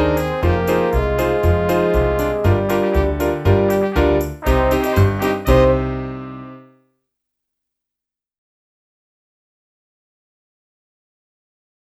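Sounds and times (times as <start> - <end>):
saxophone: 0.0 - 6.7.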